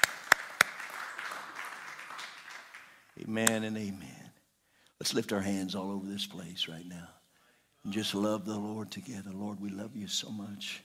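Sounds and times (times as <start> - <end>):
audience clapping hands: 0.0 - 3.6
speech: 3.2 - 4.2, 5.0 - 7.2, 7.8 - 10.8.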